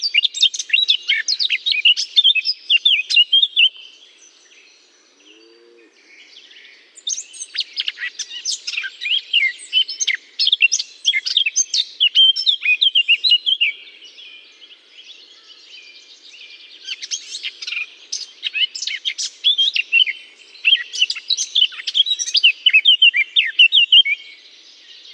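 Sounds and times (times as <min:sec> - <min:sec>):
Eurasian blackcap song of fast varied warbling with loud fluting notes in holly: 0:00.0 - 0:04.0, 0:07.0 - 0:13.8, 0:16.8 - 0:24.4.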